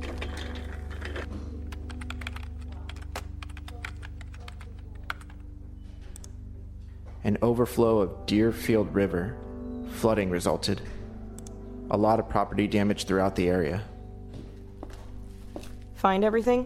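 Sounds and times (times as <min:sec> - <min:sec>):
typing on a computer keyboard: 0:00.1 - 0:05.4
speech: 0:07.2 - 0:10.9, 0:11.9 - 0:13.9, 0:16.0 - 0:16.6.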